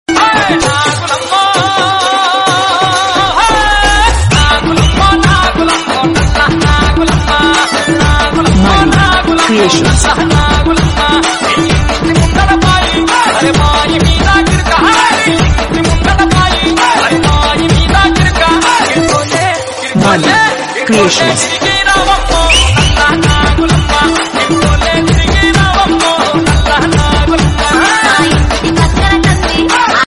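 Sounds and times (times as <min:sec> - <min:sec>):
Telugu folk song: 0:00.1 - 0:30.0.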